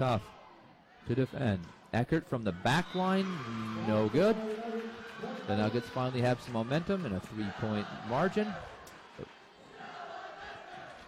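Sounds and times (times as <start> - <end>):
speech: 0.0 - 0.4, 1.0 - 4.7, 5.5 - 9.4
crowd chanting: 3.3 - 11.0.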